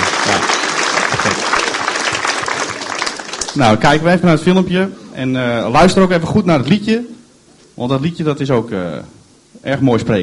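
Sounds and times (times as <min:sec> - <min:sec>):
audience applause: 0:00.0 - 0:03.8
speech: 0:03.6 - 0:07.2, 0:07.8 - 0:10.2.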